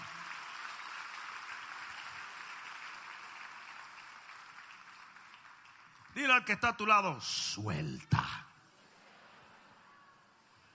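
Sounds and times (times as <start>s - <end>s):
crowd clapping: 0.0s - 7.3s
speech: 6.2s - 8.4s.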